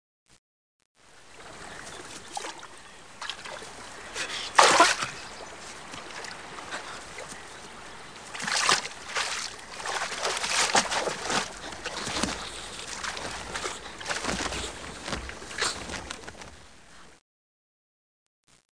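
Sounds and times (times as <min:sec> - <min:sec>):
water: 0:01.0 - 0:17.1.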